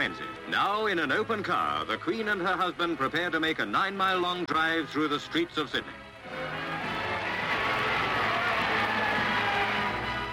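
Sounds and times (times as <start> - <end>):
speech: 0.0 - 6.6
huge street crowd cheering the royal couple: 6.3 - 10.3.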